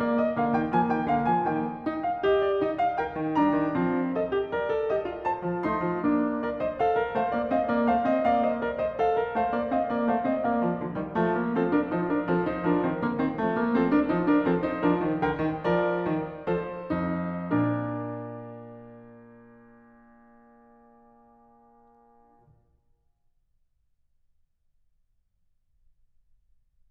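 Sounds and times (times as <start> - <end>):
keyboard fugue in B-flat major: 0.0 - 20.9.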